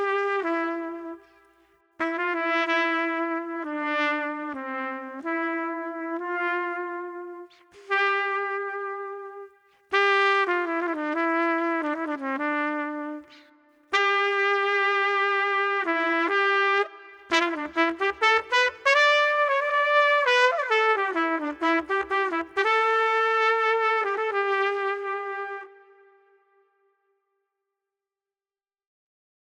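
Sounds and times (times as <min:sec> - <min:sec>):
gloomy street trumpet playing: 0:00.0 - 0:01.4, 0:02.0 - 0:26.3.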